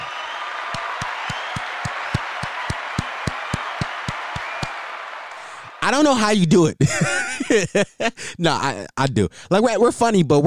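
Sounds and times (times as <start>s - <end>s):
round of applause: 0.0s - 5.9s
speech: 5.9s - 10.4s
laughter: 6.7s - 8.4s.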